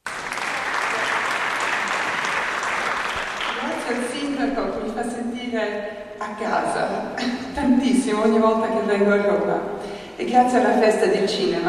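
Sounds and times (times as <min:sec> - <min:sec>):
audience applauding at a press conference: 0:00.0 - 0:04.0
speech: 0:03.9 - 0:11.6.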